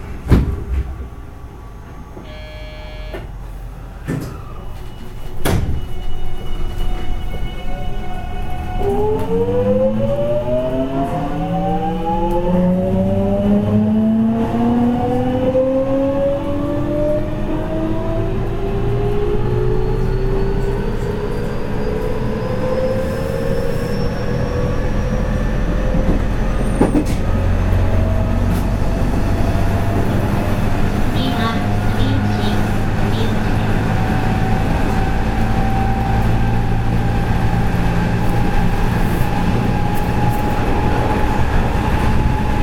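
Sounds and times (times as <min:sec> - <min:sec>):
JR 207 series commuter train doors shutting: 0:00.0 - 0:12.7, 0:18.8 - 0:42.6
JR 207 series train rumble: 0:00.0 - 0:42.6
JR 207 series commuter train door chime beeps: 0:02.2 - 0:03.4.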